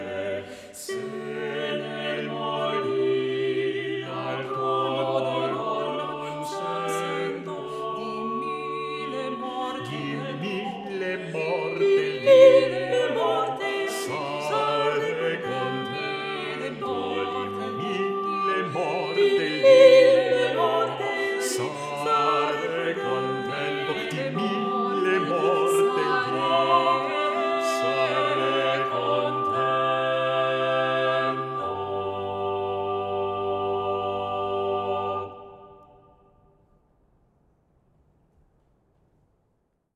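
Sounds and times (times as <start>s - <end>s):
vocal ensemble singing without the tenor part: 0.0s - 36.2s.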